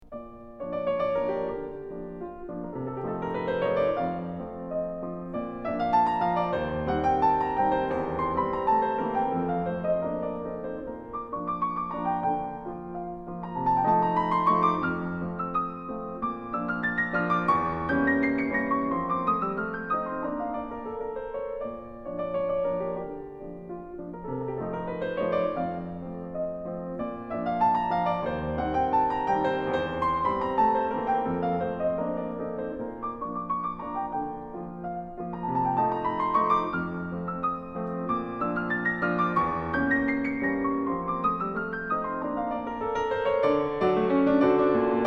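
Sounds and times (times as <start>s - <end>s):
impromptu in B-flat: 0.0s - 45.0s.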